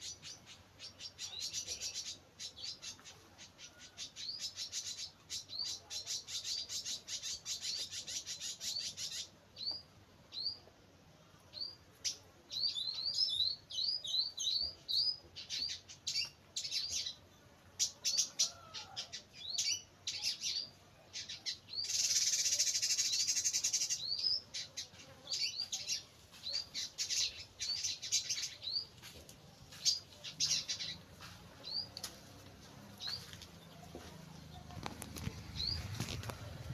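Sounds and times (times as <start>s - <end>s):
birds chirping: 0.0s - 10.8s, 11.4s - 36.7s.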